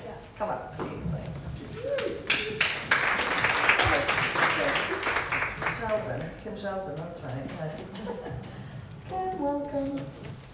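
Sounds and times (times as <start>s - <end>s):
speech: 0.4s - 0.8s, 6.6s - 8.5s, 9.1s - 10.3s
audience applause at a celebration of Guyanese-British poets and storywriters: 2.0s - 6.0s.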